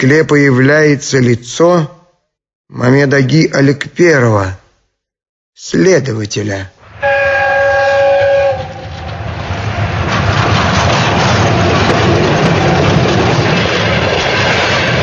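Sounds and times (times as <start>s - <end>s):
speech: 0.0s - 2.0s, 2.7s - 4.6s, 5.6s - 7.1s
passenger train moving on rails: 6.9s - 15.0s.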